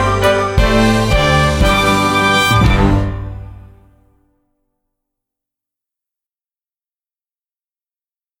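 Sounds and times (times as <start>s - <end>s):
musical accompaniment: 0.0s - 4.0s.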